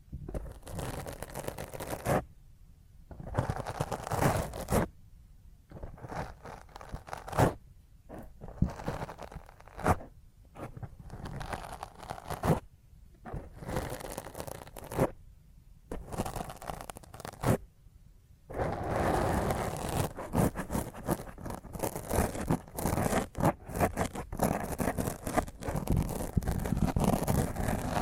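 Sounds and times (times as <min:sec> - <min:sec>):
fingernails scratching roughly across a microphone: 0:00.3 - 0:02.3, 0:03.1 - 0:04.9, 0:05.7 - 0:15.2, 0:15.9 - 0:17.6, 0:18.5 - 0:28.0.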